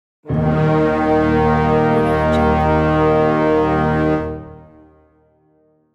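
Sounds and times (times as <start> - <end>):
dark war horn: 0.2 - 5.9.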